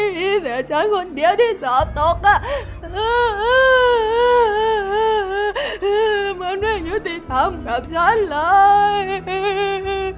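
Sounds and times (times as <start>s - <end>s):
speech: 0.6s - 4.7s, 6.4s - 10.1s
voice imitating a rabbit crying in a children's story: 2.2s - 6.7s.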